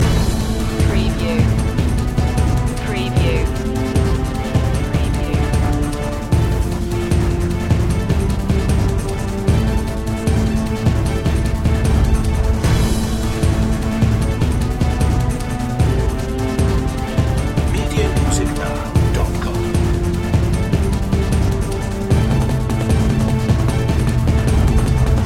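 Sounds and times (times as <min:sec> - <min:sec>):
earthquake rumble loop: 0:00.0 - 0:25.2.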